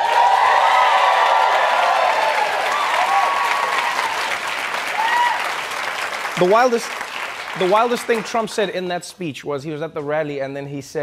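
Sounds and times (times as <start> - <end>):
audience whoops: 0.0 - 5.6
show audience clapping and cheering: 0.0 - 8.9
speech: 6.4 - 11.0.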